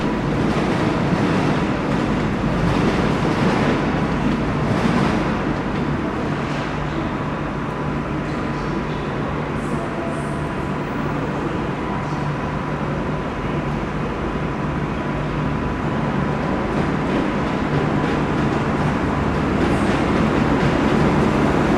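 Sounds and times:
train station ambience: 0.0s - 21.7s.

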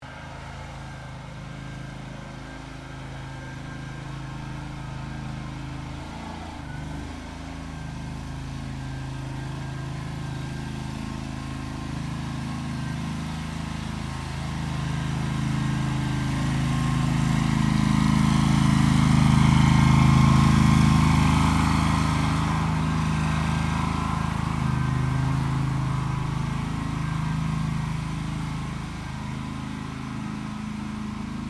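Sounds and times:
Honda GXV530 Polyvac gas-powered floor cleaner approaching and withdrawing: 0.0s - 31.4s.

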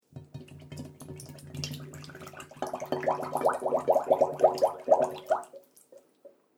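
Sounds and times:
water bubbling: 1.1s - 5.8s.

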